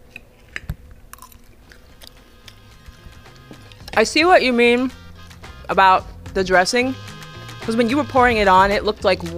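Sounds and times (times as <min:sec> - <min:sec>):
crunchy chewing of salad: 0:00.0 - 0:04.0
speech: 0:04.0 - 0:05.0, 0:05.7 - 0:07.1, 0:07.7 - 0:09.3.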